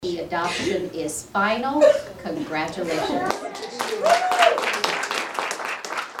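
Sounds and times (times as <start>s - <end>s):
speech: 0.0s - 4.4s
people cheering and clapping in the Durango Juvenile Court Center in Phoenix: 3.2s - 6.1s
person whooping: 3.4s - 5.0s.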